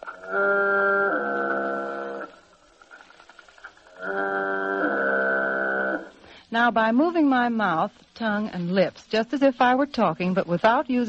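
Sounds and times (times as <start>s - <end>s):
foghorn recording played through a Sonovox: 0.0s - 2.6s, 3.9s - 6.2s
speech: 6.5s - 11.0s.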